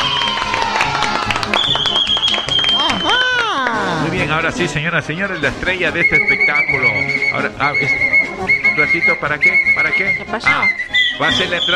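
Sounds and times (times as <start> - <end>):
children applauding: 0.0 - 3.9
speech: 4.4 - 11.7.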